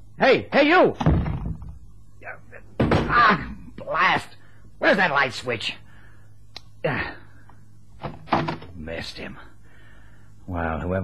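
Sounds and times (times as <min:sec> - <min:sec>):
speech: 0:00.2 - 0:01.2, 0:03.1 - 0:05.8, 0:06.8 - 0:07.2, 0:08.8 - 0:09.5, 0:10.5 - 0:11.0
person falling over a chair in dark: 0:01.0 - 0:01.8, 0:02.8 - 0:03.5, 0:08.0 - 0:08.8.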